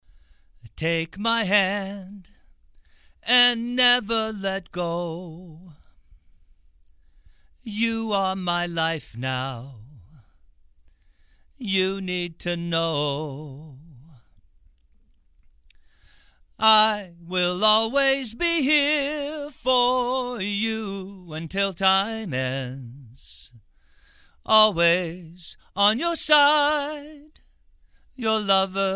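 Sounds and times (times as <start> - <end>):
male vocals: 0.6 - 2.5, 3.2 - 6.1, 7.6 - 10.4, 11.5 - 14.4, 16.6 - 23.6, 24.4 - 27.5, 28.1 - 28.9.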